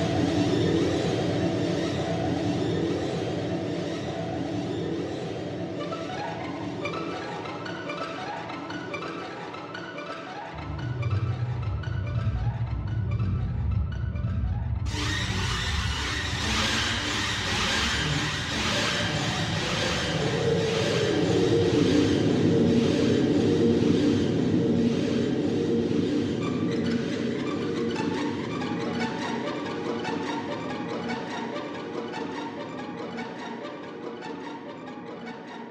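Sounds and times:
scary background music for video: 0.0 - 35.6.

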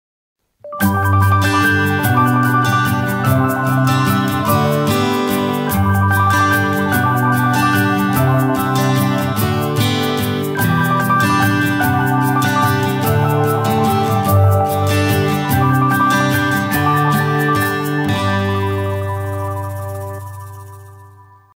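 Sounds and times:
techno music: 0.7 - 21.1.

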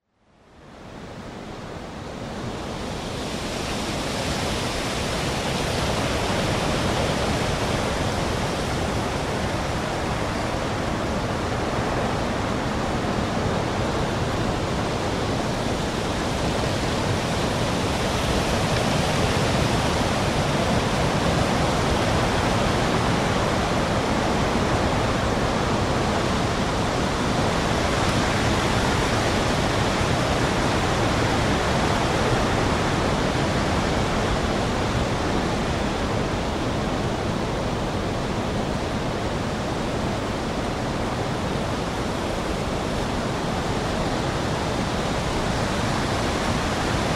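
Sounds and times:
strong wind: 0.0 - 47.1.

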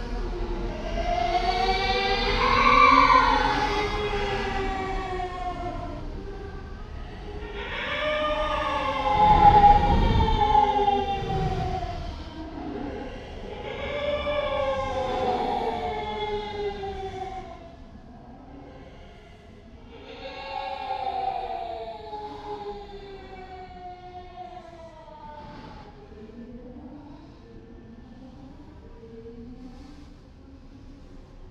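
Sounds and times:
scary sounds: 0.0 - 17.5.

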